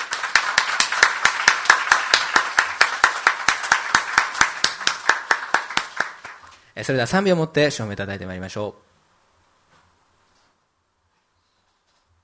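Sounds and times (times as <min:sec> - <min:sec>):
audience clapping hands: 0:00.0 - 0:06.6
speech: 0:06.8 - 0:08.9.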